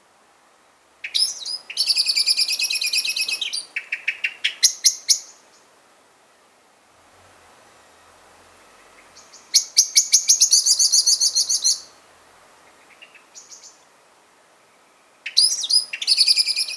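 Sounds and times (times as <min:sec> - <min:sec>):
common blackbird Turdus merula giving sharp metallic chink calls: 0:01.0 - 0:05.7, 0:07.9 - 0:12.0, 0:12.6 - 0:13.9, 0:14.6 - 0:16.7.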